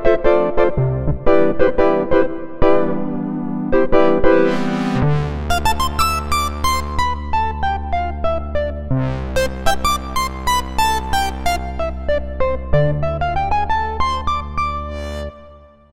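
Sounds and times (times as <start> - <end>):
Cheetah MS6 synthesizer wave mix: 0.2 - 15.8.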